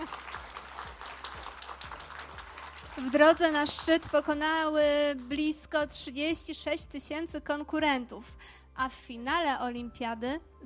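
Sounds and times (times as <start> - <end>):
faint applause: 0.0 - 4.0
speech: 3.0 - 10.6.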